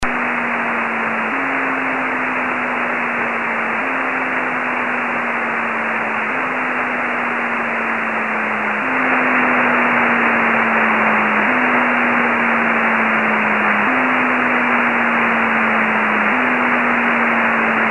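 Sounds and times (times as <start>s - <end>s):
beacon signal: 0.1s - 17.8s.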